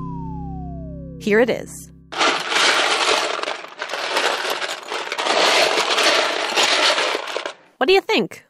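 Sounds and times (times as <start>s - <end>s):
speech: 1.3s - 1.9s, 7.8s - 8.4s
plastic Lego bricks rummaged through in a pile: 2.2s - 7.7s.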